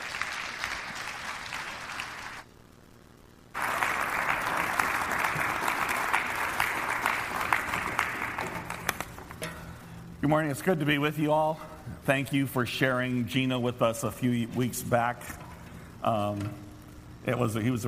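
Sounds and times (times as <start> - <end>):
church congregation applauding to welcome a guest speaker: 0.0 - 2.5, 3.5 - 9.3
speech: 10.2 - 15.4, 16.0 - 16.6, 17.2 - 17.8.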